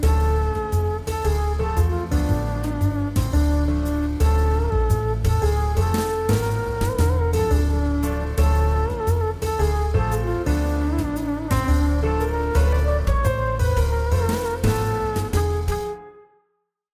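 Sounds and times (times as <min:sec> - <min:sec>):
upbeat walking music: 0:00.0 - 0:16.0.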